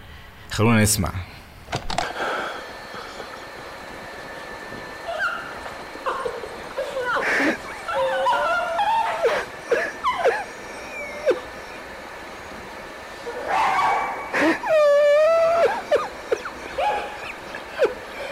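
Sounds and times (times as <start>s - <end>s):
steady tape hiss: 0.0s - 18.2s
speech: 0.6s - 1.4s
dog whimpering and yelping on an old tape recording: 5.0s - 12.0s, 13.2s - 18.2s.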